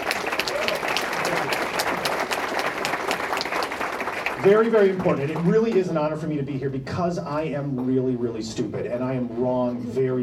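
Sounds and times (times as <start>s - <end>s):
audience applause: 0.0s - 5.9s
speech: 4.4s - 10.2s.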